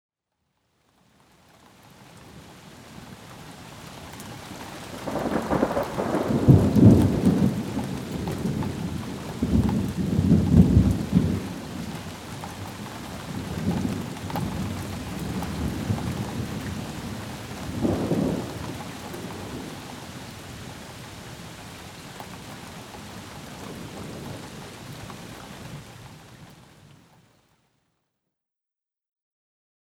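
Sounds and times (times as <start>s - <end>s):
rain: 0.5s - 27.4s
thunder: 4.8s - 20.8s, 23.5s - 25.2s.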